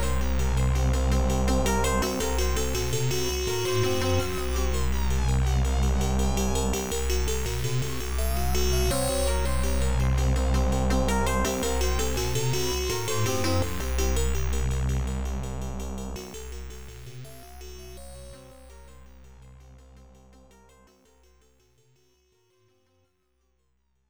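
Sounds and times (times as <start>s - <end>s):
round background music: 0.0s - 17.1s.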